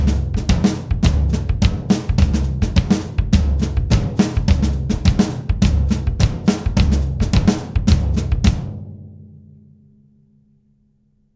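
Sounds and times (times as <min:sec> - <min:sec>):
batucada rhythm on drum set: 0:00.0 - 0:08.9.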